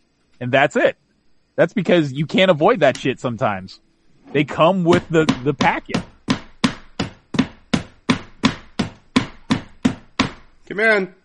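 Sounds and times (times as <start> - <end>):
speech: 0.4 - 1.0, 1.6 - 6.1, 10.7 - 11.2
knocking dust out of a keyboard: 4.9 - 10.6.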